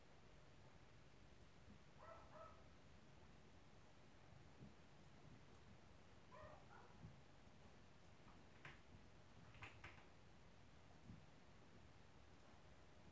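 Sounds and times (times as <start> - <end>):
steady background hiss: 0.0 - 13.1
muffled dog barks: 2.0 - 2.7, 6.3 - 7.0.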